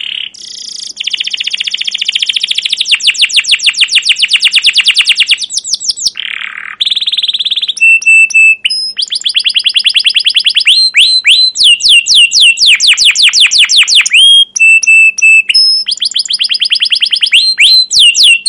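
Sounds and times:
caged domestic canary singing rolling trills: 0:00.0 - 0:18.4.

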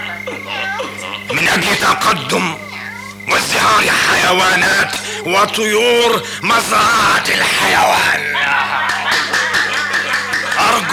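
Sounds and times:
laughter: 0:00.0 - 0:02.3, 0:07.4 - 0:10.9
speech: 0:01.6 - 0:02.7, 0:03.3 - 0:09.0, 0:10.7 - 0:10.9
rhythmic crowd clapping: 0:08.5 - 0:10.9.

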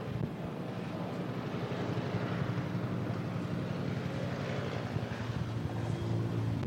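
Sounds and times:
helicopter flying overhead: 0:00.0 - 0:06.6.

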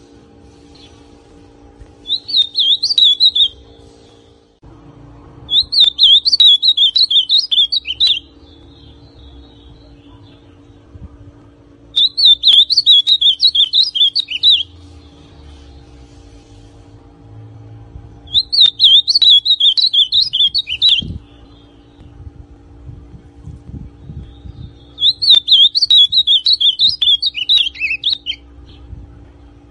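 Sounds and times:
ultramarine grosbeak song: 0:02.0 - 0:04.3, 0:05.5 - 0:10.8, 0:11.9 - 0:16.0, 0:18.2 - 0:22.1, 0:24.0 - 0:28.9.

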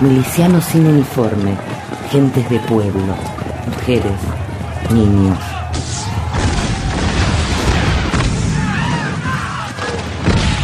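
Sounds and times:
speech: 0:00.0 - 0:06.0
gunfire from English troops: 0:05.7 - 0:10.6
heavy booming blasts: 0:05.7 - 0:10.6.

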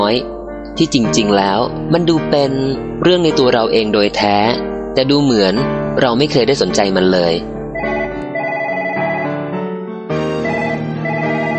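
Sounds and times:
speech: 0:00.1 - 0:07.5
phone ringing: 0:07.8 - 0:09.4, 0:10.4 - 0:11.5.

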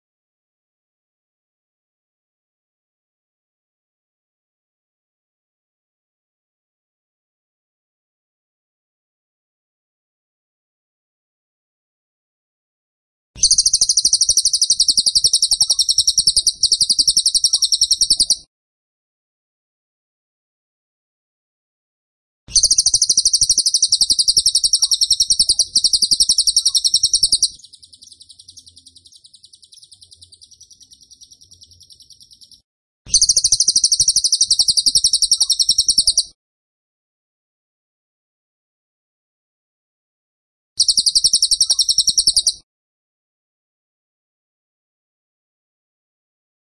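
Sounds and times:
tembakan bird trilling: 0:13.4 - 0:18.4, 0:22.5 - 0:36.3, 0:40.8 - 0:42.6.

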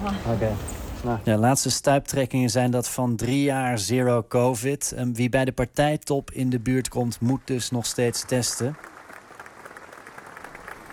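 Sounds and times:
speech: 0:00.0 - 0:08.9
applause for a speaker taking the stage: 0:07.0 - 0:10.9.

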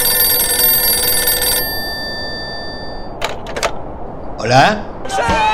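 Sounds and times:
telephone bell ringing at Marambio Base in Antarctica: 0:00.0 - 0:03.2
clattering clicks: 0:03.2 - 0:03.8
speech: 0:04.5 - 0:05.4.

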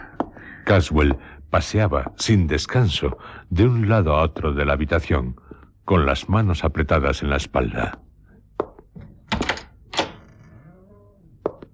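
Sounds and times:
speech: 0:00.7 - 0:08.0
door being pushed open: 0:09.0 - 0:10.6.

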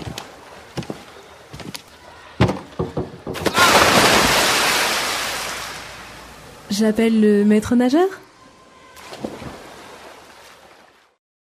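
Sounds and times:
splash of someone jumping from a high diving board into a pool: 0:03.4 - 0:06.1, 0:09.0 - 0:11.2
speech: 0:06.8 - 0:08.3.

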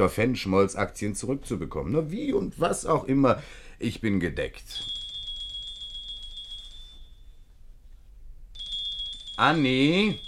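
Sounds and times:
speech: 0:00.0 - 0:05.0, 0:09.4 - 0:10.2
doorbell ringing: 0:04.8 - 0:07.6, 0:08.6 - 0:10.2.

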